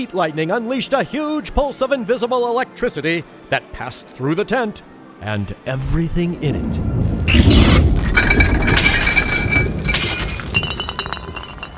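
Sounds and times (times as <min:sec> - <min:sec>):
speech: 0:00.0 - 0:07.6
glass bottles knocked over and clinking: 0:08.1 - 0:11.7.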